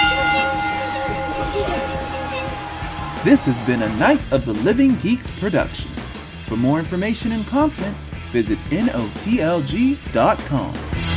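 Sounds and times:
bell ringing: 0.0 - 4.4
speech: 3.2 - 11.0.

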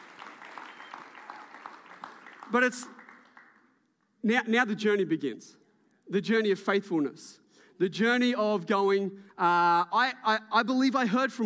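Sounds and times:
audience round of applause: 0.0 - 3.7
speech: 2.5 - 3.0, 4.2 - 11.4.

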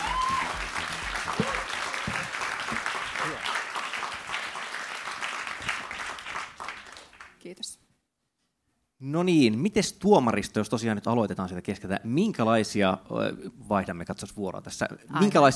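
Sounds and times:
applause: 0.0 - 7.4
speech: 9.1 - 15.5.

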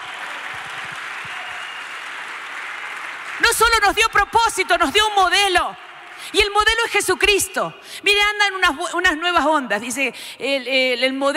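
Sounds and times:
audience applause: 0.0 - 5.2
speech: 3.5 - 11.3.

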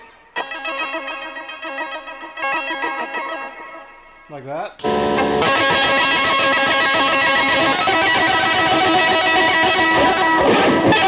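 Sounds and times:
electric guitar pick tapping: 0.0 - 11.0
speech: 4.3 - 6.0.

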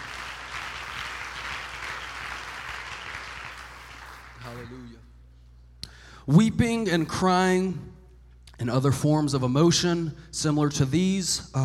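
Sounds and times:
seated audience clapping hands: 0.0 - 5.0
speech: 4.4 - 5.1, 6.3 - 7.9, 8.6 - 11.6.

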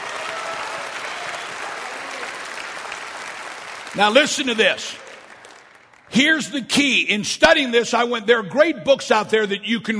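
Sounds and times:
audience clapping: 0.0 - 6.4
speech: 3.9 - 5.0, 6.1 - 9.9.

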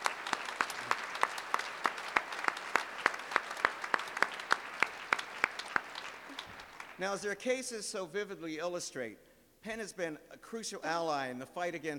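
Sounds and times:
audience applause: 0.0 - 7.0
speech: 7.0 - 11.9.

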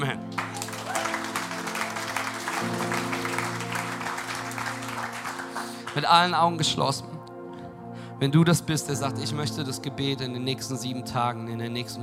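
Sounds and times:
speech: 0.0 - 0.4, 6.0 - 7.1, 8.2 - 12.0
audience applause: 0.3 - 6.4.

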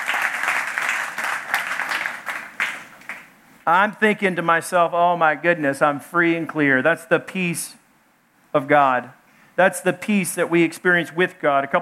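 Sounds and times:
audience clapping: 0.0 - 3.3
speech: 3.7 - 7.8, 8.5 - 11.8.

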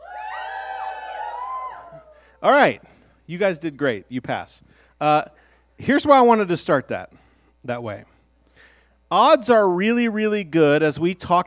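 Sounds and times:
people imitating a cheering crowd with high whoops and yells: 0.0 - 2.3
speech: 2.4 - 8.1, 9.1 - 11.4.

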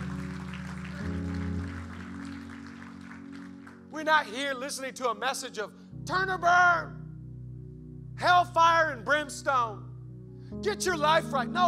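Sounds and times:
audience clapping: 0.0 - 3.9
sustained organ-like chords: 0.0 - 11.6
speech: 4.0 - 7.0, 8.2 - 9.9, 10.5 - 11.6.

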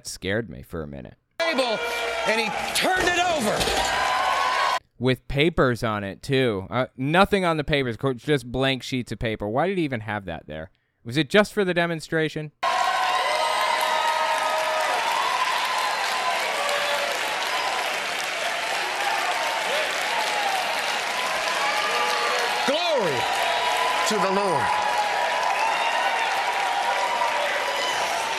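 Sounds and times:
speech: 0.0 - 4.2, 5.0 - 12.6
audience standing and clapping wildly: 1.4 - 4.8, 12.6 - 28.3.

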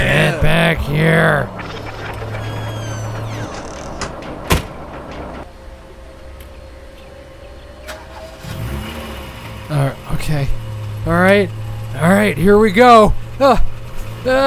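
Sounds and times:
car engine cranking, starting and idling: 0.0 - 14.4
speech: 0.8 - 1.8, 9.8 - 14.4
car door slamming: 4.0 - 5.2.

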